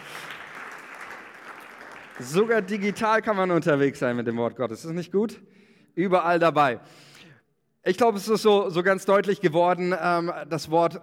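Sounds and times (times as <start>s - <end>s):
audience applause: 0.0s - 3.2s
speech: 2.2s - 7.1s, 7.8s - 11.0s.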